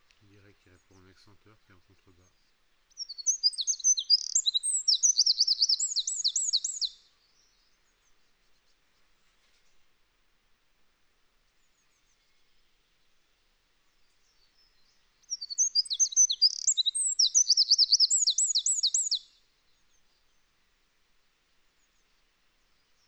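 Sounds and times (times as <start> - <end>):
Eurasian wren Troglodytes troglodytes singing: 2.9 - 7.0, 14.4 - 19.3.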